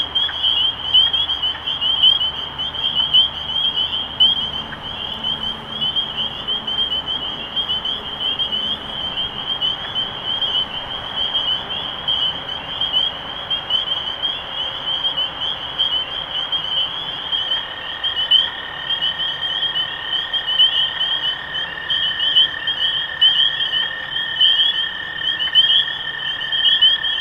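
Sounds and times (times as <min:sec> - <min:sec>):
low droning tone: 0:00.0 - 0:13.6
massed spring peepers peeping: 0:00.0 - 0:27.1.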